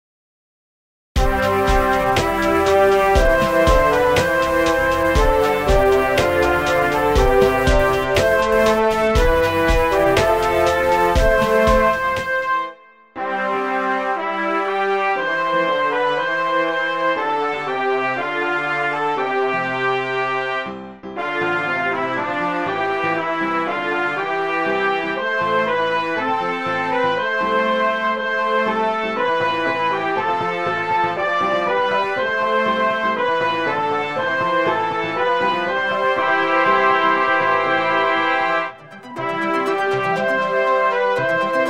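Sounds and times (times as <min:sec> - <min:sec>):
instrumental music: 0:01.2 - 0:41.6.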